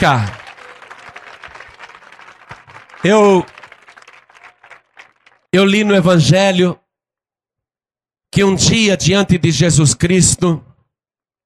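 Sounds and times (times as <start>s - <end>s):
speech: 0.0s - 0.4s, 3.0s - 3.6s, 5.5s - 6.8s, 8.4s - 10.7s
audience applauding: 0.0s - 5.5s.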